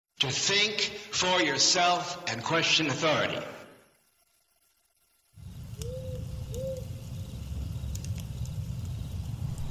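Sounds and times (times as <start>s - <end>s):
speech: 0.2s - 3.6s
campfire crackling in a forest: 4.9s - 9.6s
steady low rumble: 5.4s - 9.6s
bird whistles: 5.8s - 7.0s.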